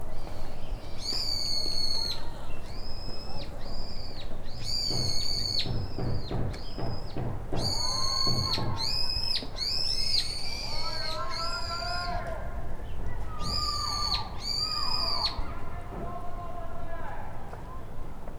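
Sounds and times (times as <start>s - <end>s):
bird calls with long flat high whistled notes: 0.2s - 18.2s.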